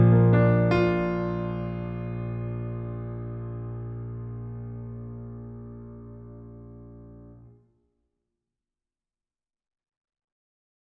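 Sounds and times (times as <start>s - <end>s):
piano music: 0.0s - 7.6s.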